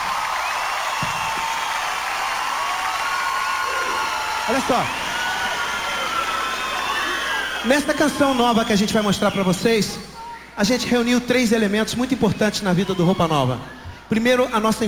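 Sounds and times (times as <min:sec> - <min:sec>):
audience applauding: 0:00.0 - 0:09.6
speech: 0:04.5 - 0:05.0, 0:07.6 - 0:14.8.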